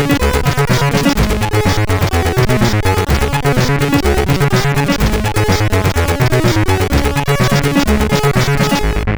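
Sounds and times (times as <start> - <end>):
distorted SID chip sound: 0.0 - 9.0.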